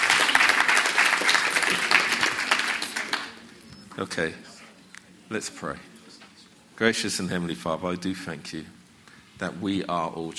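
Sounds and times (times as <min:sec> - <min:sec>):
audience clapping: 0:00.0 - 0:03.6
speech: 0:04.0 - 0:04.5, 0:05.3 - 0:05.9, 0:06.8 - 0:08.8, 0:09.4 - 0:10.3.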